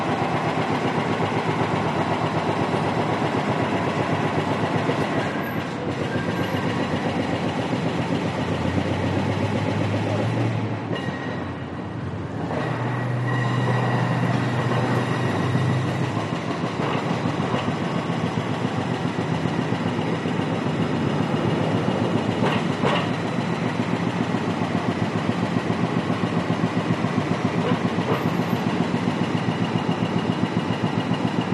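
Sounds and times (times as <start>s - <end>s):
slightly distant construction in New York City: 0.0s - 31.5s.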